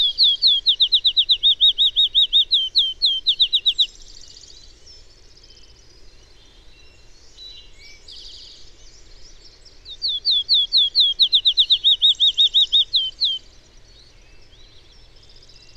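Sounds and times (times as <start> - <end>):
bird singing fast slurred whistles: 0.0 - 3.9, 9.9 - 13.5.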